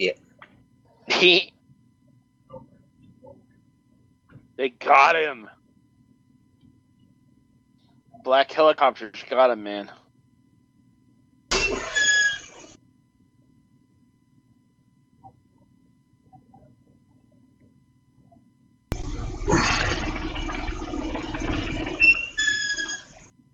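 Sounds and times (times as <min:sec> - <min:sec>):
speech: 0:00.0 - 0:00.2, 0:01.1 - 0:01.5, 0:04.6 - 0:05.6, 0:08.2 - 0:10.0
homemade workout pulley rattling and whirring: 0:18.9 - 0:23.3
high squealing beeps: 0:21.5 - 0:23.2.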